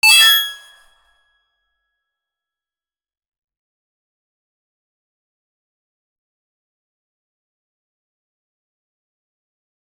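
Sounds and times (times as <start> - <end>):
collectible pickup sound: 0.0 - 0.7.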